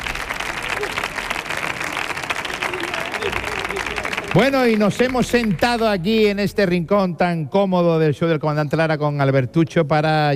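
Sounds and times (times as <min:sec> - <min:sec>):
audience applause: 0:00.0 - 0:05.9
speech: 0:04.4 - 0:10.3.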